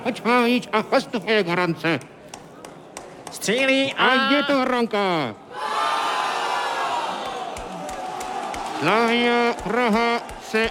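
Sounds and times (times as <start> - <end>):
speech: 0.0 - 2.2, 3.3 - 5.7, 8.8 - 10.6
football stadium crowd cheering a goal: 5.5 - 10.6.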